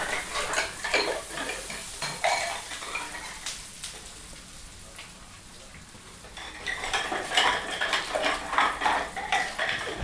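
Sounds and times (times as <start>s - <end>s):
washing dishes: 0.0s - 3.5s, 5.6s - 10.0s
pots and pans clattering: 0.0s - 3.6s, 6.2s - 10.0s.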